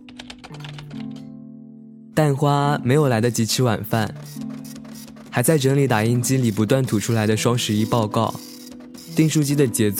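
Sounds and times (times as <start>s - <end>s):
fast typing on computer keyboard: 0.0s - 1.2s, 4.0s - 9.7s
speech: 2.2s - 4.4s, 5.4s - 8.5s, 9.2s - 9.9s.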